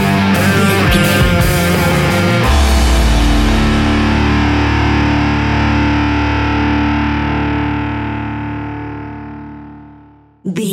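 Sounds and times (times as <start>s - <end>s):
thumping rock bass lines: 0.0s - 5.3s
heavy rock drums: 0.0s - 6.7s
rock guitars: 0.0s - 10.1s.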